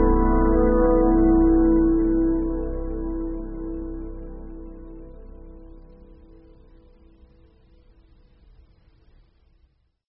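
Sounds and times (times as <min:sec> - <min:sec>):
contemplative music: 0:00.0 - 0:07.7.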